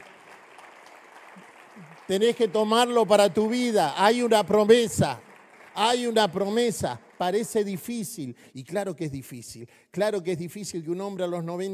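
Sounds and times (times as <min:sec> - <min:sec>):
audience applauding: 0:00.0 - 0:08.3
speech: 0:01.8 - 0:05.2, 0:05.8 - 0:11.7.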